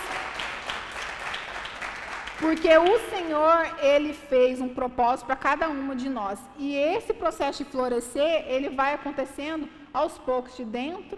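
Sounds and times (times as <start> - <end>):
audience applause: 0.0 - 2.6
speech: 2.4 - 11.1.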